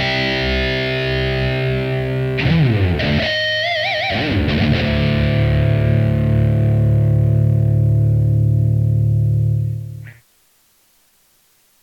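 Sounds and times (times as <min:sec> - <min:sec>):
nu metal low gain electric guitar: 0:00.0 - 0:10.2.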